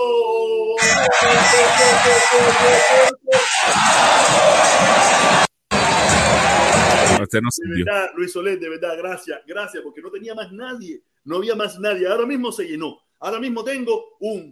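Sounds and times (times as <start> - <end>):
big stadium crowd cheering and shouting for a goal: 0.8 - 7.4
speech: 1.0 - 4.9, 7.2 - 14.5.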